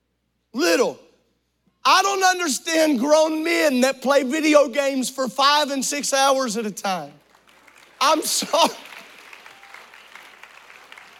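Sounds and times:
speech: 2.2s - 7.2s, 8.0s - 8.9s
few people clapping: 7.2s - 11.1s.

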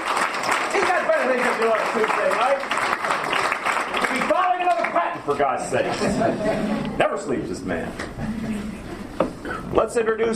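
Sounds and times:
audience applause: 0.0s - 5.5s
speech: 1.2s - 2.9s, 5.3s - 8.8s, 9.7s - 10.3s
laughter: 5.6s - 7.1s, 8.2s - 9.2s.

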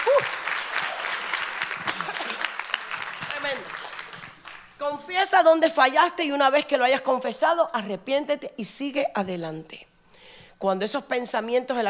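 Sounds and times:
audience applause: 0.0s - 4.7s
speech: 4.9s - 9.9s, 10.6s - 11.8s.

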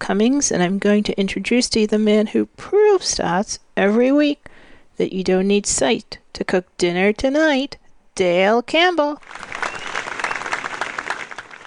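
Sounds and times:
speech: 0.1s - 9.5s
one person clapping hands: 9.2s - 11.6s.

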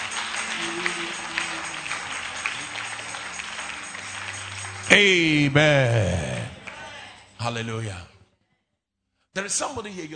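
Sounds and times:
congregation clapping in praise during prayer: 0.0s - 7.0s
speech: 4.9s - 6.4s, 7.4s - 8.1s, 9.4s - 10.1s.

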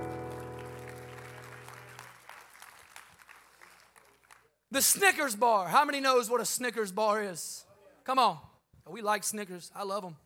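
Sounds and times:
sustained musical chord: 0.0s - 1.8s
audience clapping: 0.0s - 4.6s
speech: 4.7s - 10.2s.

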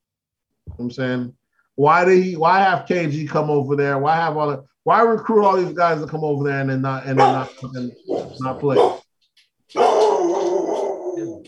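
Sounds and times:
speech: 0.8s - 9.0s
dog barking at someone at the door: 7.2s - 9.1s, 9.7s - 11.3s.

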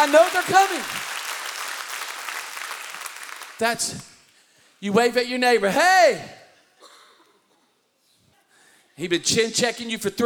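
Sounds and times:
speech: 0.0s - 1.1s, 3.6s - 4.1s, 4.8s - 6.4s, 9.0s - 10.2s
church audience clapping hands: 0.0s - 4.2s.

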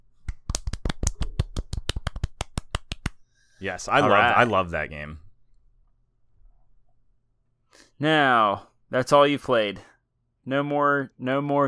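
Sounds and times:
golf clap: 0.3s - 3.2s
speech: 3.6s - 5.2s, 8.0s - 11.6s.

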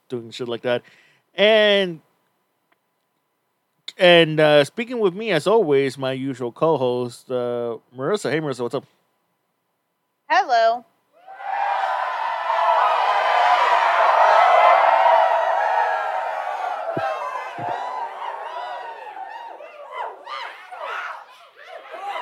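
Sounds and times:
speech: 0.1s - 2.1s, 4.0s - 9.0s, 10.3s - 10.9s
studio audience cheering and whooping: 11.2s - 22.2s.

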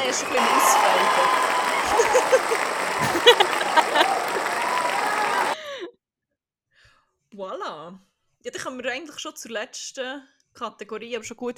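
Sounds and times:
speech: 0.0s - 4.6s, 7.4s - 11.5s
applause: 0.0s - 5.6s
laughter: 0.0s - 5.8s.

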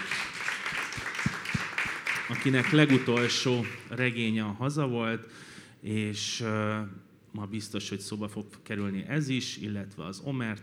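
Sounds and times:
audience applause: 0.0s - 3.9s
speech: 2.3s - 10.6s.

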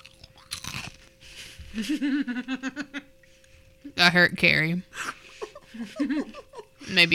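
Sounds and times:
crispy crackers crunching: 0.0s - 1.2s
laughter: 1.7s - 3.1s, 5.0s - 7.1s
speech: 1.7s - 3.2s, 3.8s - 5.1s, 5.7s - 7.1s.

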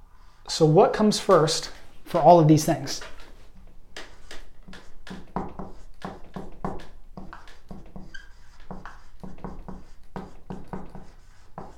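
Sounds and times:
speech: 0.5s - 3.2s
marker drawing on a board: 2.9s - 11.7s.

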